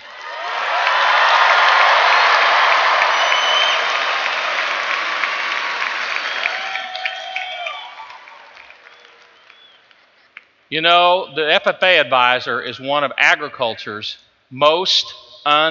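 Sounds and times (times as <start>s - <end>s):
large crowd applause: 0.0s - 10.2s
cheers and whistles: 0.2s - 9.8s
speech: 10.7s - 15.6s.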